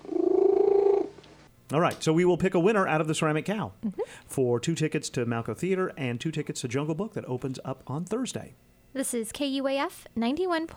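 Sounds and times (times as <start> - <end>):
cat Smokey purring loudly: 0.0 - 1.1
speech: 1.7 - 10.7.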